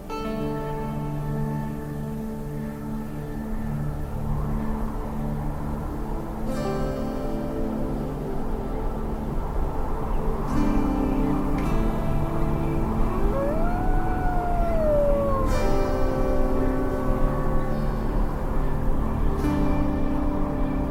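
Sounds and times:
steady layered drone of sustained tones: 0.0 - 20.9
wailing tone sliding up and down: 13.0 - 17.3.

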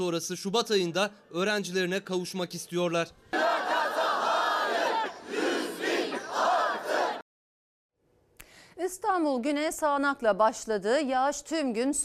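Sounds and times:
speech: 0.0 - 3.5, 8.9 - 12.0
crowd of protesters chanting slogans in unison: 3.3 - 7.2.

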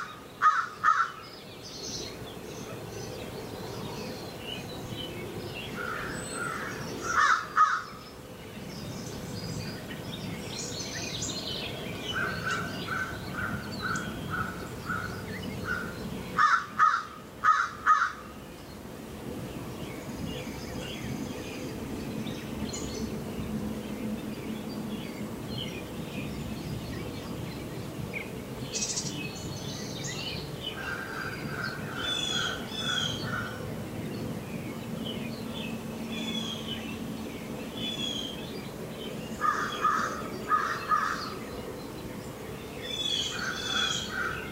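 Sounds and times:
birds chirping: 0.0 - 44.5
crow cawing in the morning woods: 0.4 - 1.2, 5.8 - 7.9, 12.2 - 18.2, 30.8 - 33.6, 39.4 - 41.3.

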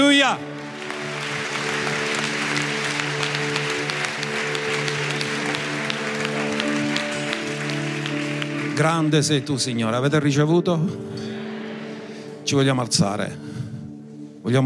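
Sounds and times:
audience applauding: 0.0 - 10.0
speech: 0.2 - 0.5, 8.8 - 11.2, 12.5 - 13.6, 14.4 - 14.6.

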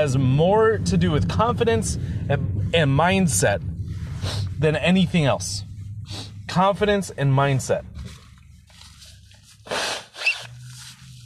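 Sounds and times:
speech: 0.0 - 8.2
nose blowing: 9.6 - 10.8.

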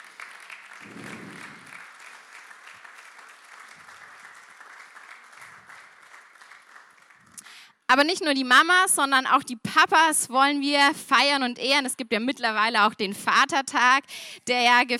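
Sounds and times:
crowd applause: 0.0 - 7.6
low thumps: 0.8 - 1.8
speech: 7.9 - 14.9.

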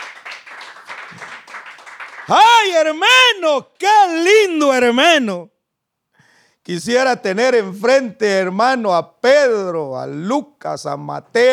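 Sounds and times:
audience clapping hands: 0.0 - 2.9
speech: 2.3 - 5.5, 6.6 - 11.5.

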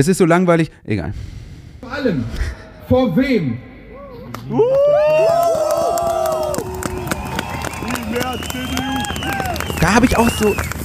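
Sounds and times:
speech: 0.0 - 3.7, 4.4 - 5.6, 8.1 - 10.8
crowd booing and shouting: 3.9 - 10.3
crowd clapping: 4.3 - 10.8.

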